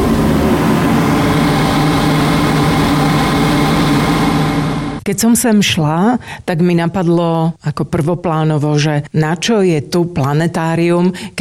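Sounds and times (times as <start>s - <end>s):
ventilation fan and vacuum pump hum: 0.0s - 5.1s
speech: 5.1s - 11.4s.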